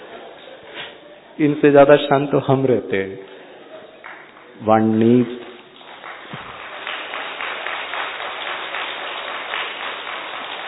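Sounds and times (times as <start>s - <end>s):
speech: 1.4s - 3.3s, 4.6s - 5.4s
audience clapping during a spiritual talk on meditation and happiness: 3.9s - 10.6s.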